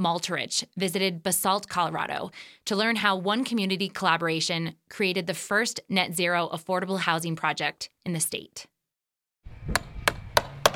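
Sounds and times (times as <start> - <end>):
speech: 0.0 - 8.7
hammer strikes: 9.6 - 10.7.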